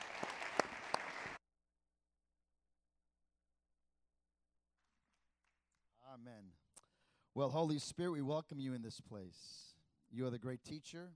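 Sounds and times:
church congregation applause welcoming a speaker to the stage: 0.0 - 1.4
speech: 6.2 - 6.6, 7.4 - 11.1.

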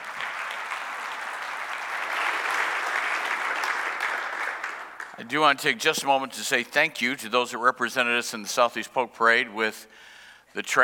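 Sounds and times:
audience clapping hands: 0.0 - 6.1
speech: 5.2 - 10.8.

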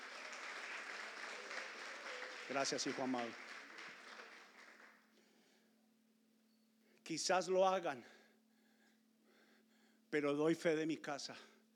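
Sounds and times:
audience applause: 0.0 - 5.0
speech: 2.5 - 3.4, 7.1 - 8.2, 10.1 - 11.5.

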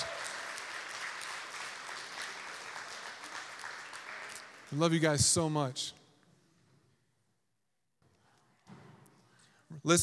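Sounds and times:
audience clapping: 0.0 - 5.6
speech: 4.7 - 6.0, 9.8 - 10.0.

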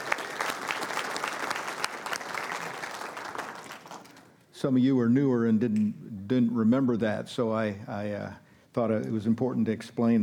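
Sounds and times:
church congregation clapping to welcome returning members: 0.0 - 4.4
speech: 4.6 - 10.2.

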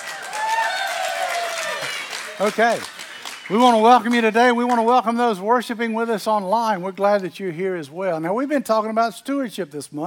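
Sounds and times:
people cheering: 0.0 - 5.0
audience clapping: 0.0 - 5.2
speech: 2.4 - 10.0.

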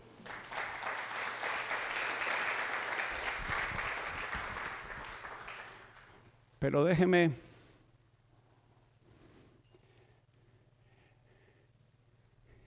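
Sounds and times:
applause: 0.0 - 6.3
speech: 6.6 - 7.5.

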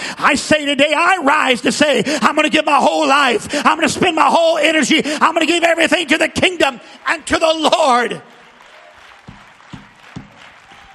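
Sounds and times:
speech: 0.2 - 8.4
crowd noise: 5.2 - 10.9
audience clapping rhythmically: 6.8 - 10.9.

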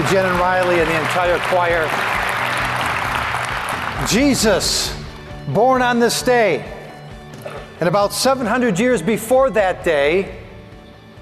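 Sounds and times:
audience applause: 0.0 - 4.4
speech: 0.1 - 2.1, 4.0 - 6.8, 7.8 - 10.4.

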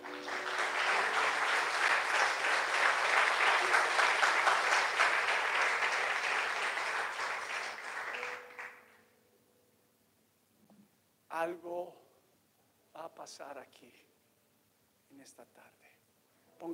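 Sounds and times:
crowd applauding: 0.0 - 9.0
speech: 13.3 - 14.2, 15.2 - 15.9.

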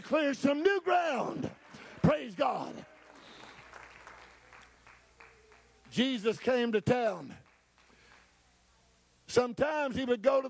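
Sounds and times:
speech: 0.1 - 2.9, 5.9 - 7.4, 9.3 - 10.4
audience clapping hands: 0.9 - 8.4.

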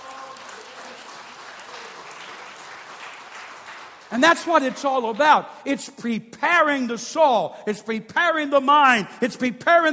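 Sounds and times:
audience hand clapping: 0.0 - 5.4
speech: 4.1 - 9.9.

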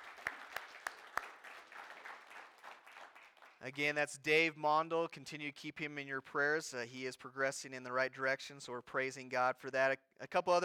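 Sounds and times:
audience round of applause: 0.0 - 3.6
speech: 3.6 - 10.6.

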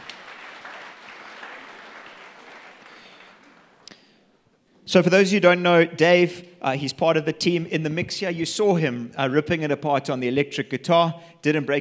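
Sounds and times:
audience applause: 0.0 - 3.9
speech: 4.9 - 11.7.

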